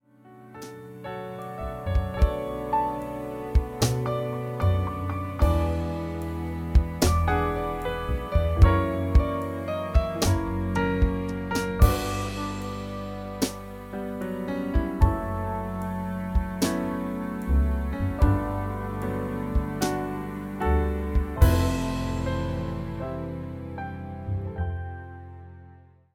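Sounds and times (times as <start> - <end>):
music with full instrumentation: 0.6 - 25.0.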